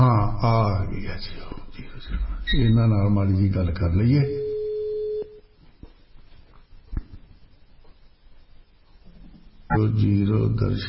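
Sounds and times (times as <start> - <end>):
speech: 0.8 - 4.4, 9.7 - 10.8
telephone call signal during a live call-in: 4.4 - 5.4.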